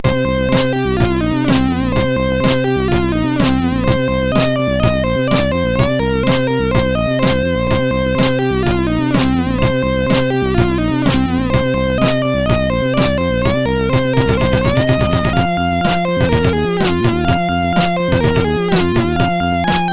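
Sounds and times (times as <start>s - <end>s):
SID MOS 6581 sound chip music: 0.0s - 19.9s.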